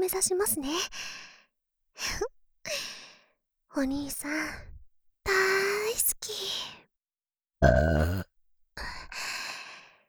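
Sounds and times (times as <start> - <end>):
speech: 0.0 - 1.2, 2.0 - 2.4, 3.7 - 4.7, 5.3 - 6.8, 7.6 - 8.9
burping: 7.6 - 8.3.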